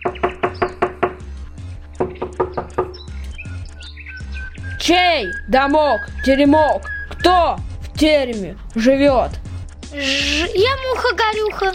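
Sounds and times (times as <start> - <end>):
knocking on a door: 0.0 - 1.3, 2.0 - 3.1
speech: 4.8 - 11.7.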